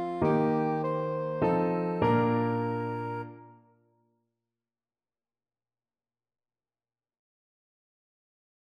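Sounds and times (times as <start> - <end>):
soprano saxophone: 0.0 - 3.7.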